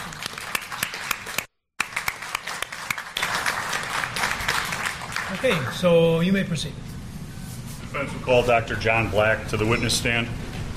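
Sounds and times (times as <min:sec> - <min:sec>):
courtroom round of applause: 0:00.0 - 0:05.8
speech: 0:05.4 - 0:06.9, 0:07.9 - 0:10.4.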